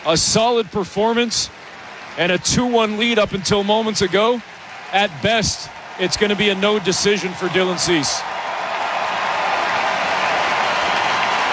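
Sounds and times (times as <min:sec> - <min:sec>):
speech: 0:00.0 - 0:01.6, 0:02.2 - 0:08.4
Blue Jays baseball crowd cheering a departing pitcher: 0:00.0 - 0:11.5.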